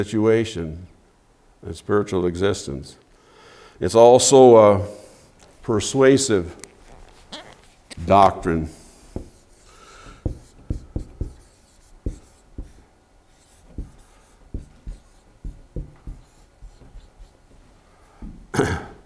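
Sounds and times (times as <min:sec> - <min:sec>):
speech: 0:00.0 - 0:00.9, 0:01.6 - 0:03.0, 0:03.8 - 0:05.0, 0:05.6 - 0:06.7, 0:08.0 - 0:08.8
handwriting strokes and taps on paper or a board: 0:06.8 - 0:17.7.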